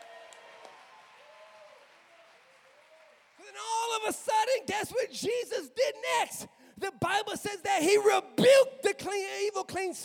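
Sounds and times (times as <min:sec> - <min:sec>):
audience clapping: 0:00.0 - 0:04.6
speech: 0:03.5 - 0:10.0.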